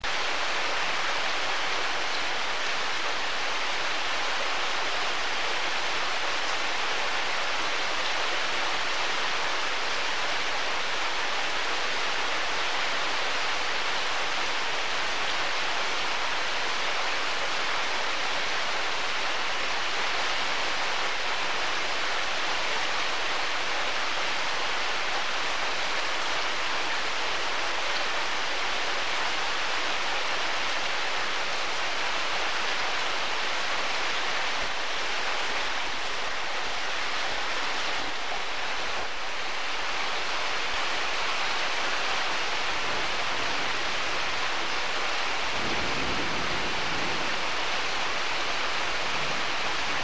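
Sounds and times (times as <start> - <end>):
rain: 0.0 - 50.0.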